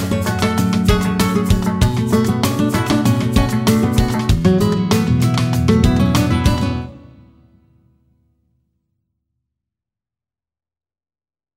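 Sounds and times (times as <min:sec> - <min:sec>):
balanced bossa nova music: 0:00.0 - 0:07.2.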